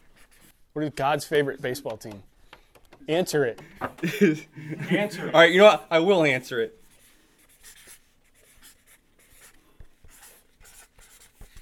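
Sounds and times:
pen scratching across paper writing words by hand: 0.0 - 0.6, 6.8 - 11.6
speech: 0.8 - 2.3, 3.0 - 6.8
pen tapping: 3.6 - 4.0
laughter: 3.6 - 6.5.

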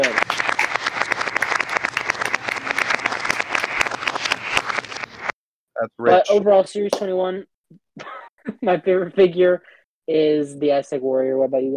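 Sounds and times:
group applause: 0.0 - 5.3
speech: 5.8 - 11.7.

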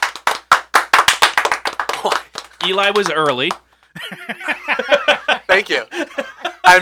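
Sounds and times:
small group clapping: 0.0 - 4.0
speech: 2.0 - 6.8
laughter: 3.9 - 6.8.

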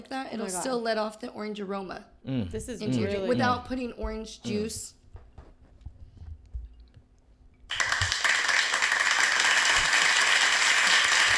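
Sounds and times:
speech: 0.0 - 5.0
standing ovation applause: 7.7 - 11.3.

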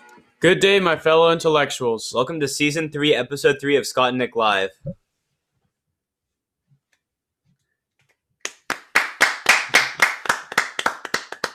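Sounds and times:
speech: 0.4 - 5.0
sharp hand claps: 8.4 - 11.5.

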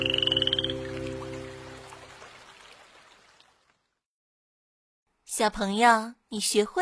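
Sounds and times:
frog croaking: 0.0 - 1.5
speech: 5.4 - 6.8.

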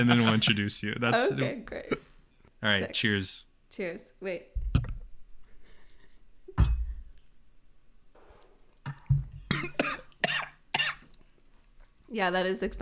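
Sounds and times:
speech: 0.0 - 4.9, 12.1 - 12.8
person coughing after tequila went down windpipe: 9.5 - 11.1.

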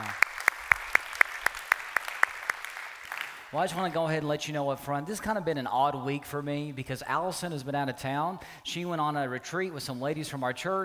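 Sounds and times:
church congregation clapping in unison: 0.0 - 4.1
speech: 3.5 - 10.8.

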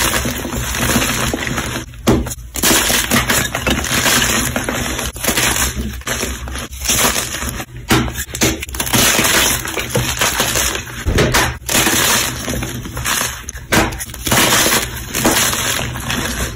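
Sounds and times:
crushing and breaking with glass-like cracks: 0.0 - 16.5.

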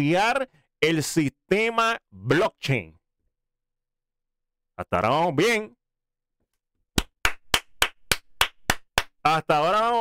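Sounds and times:
speech: 0.0 - 3.0, 4.8 - 5.8, 9.2 - 9.9
person clapping: 7.0 - 9.2.

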